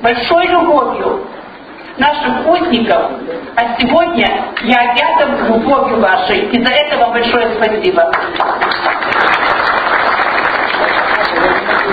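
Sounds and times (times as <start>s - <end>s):
speech: 0.0s - 1.4s, 2.0s - 9.4s
audience applause: 8.2s - 11.9s.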